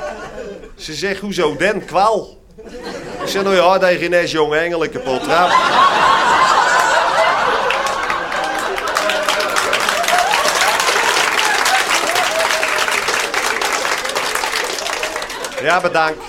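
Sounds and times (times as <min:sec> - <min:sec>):
laughter: 0:00.0 - 0:00.8, 0:01.6 - 0:03.7, 0:05.0 - 0:12.4
speech: 0:00.8 - 0:06.2, 0:15.6 - 0:16.2
large audience applause: 0:05.4 - 0:16.2.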